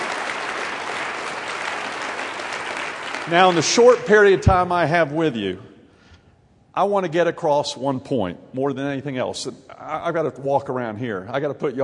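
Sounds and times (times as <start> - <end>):
audience applause at a gathering of mayors: 0.0 - 4.9
speech: 3.3 - 5.7, 6.8 - 11.8.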